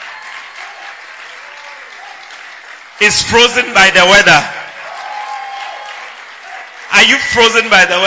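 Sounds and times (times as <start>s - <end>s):
church congregation clapping hands during a service: 0.0s - 8.0s
speech: 3.0s - 4.6s, 7.0s - 8.0s.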